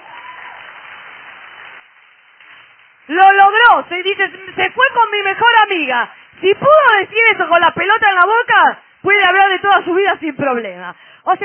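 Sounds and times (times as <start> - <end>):
audience applause: 0.0 - 3.1
speech: 3.1 - 11.4.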